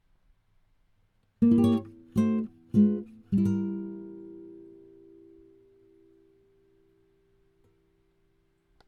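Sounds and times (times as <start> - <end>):
acoustic guitar fail sound effect: 1.4 - 8.0.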